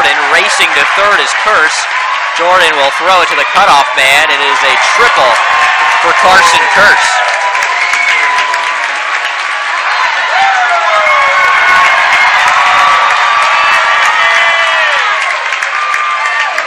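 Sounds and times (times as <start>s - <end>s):
crowd applauding at baseball game at Johnson City: 0.0s - 16.6s
speech: 0.8s - 7.3s.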